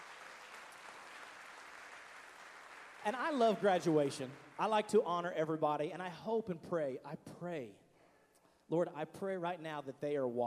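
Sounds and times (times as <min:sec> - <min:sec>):
audience hand clapping: 0:00.0 - 0:05.3
speech: 0:03.0 - 0:07.8, 0:08.7 - 0:10.4.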